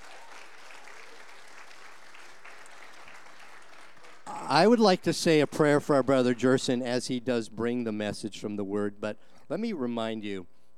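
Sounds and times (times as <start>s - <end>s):
audience applause welcoming a guest preacher: 0.0s - 6.4s
speech: 4.5s - 10.5s.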